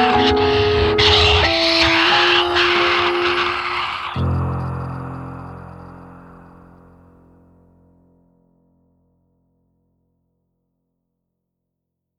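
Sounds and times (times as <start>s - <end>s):
sad comedic music: 0.0s - 7.0s.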